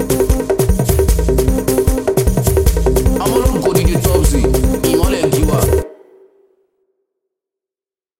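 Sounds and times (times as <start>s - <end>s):
drum beat: 0.0s - 5.9s.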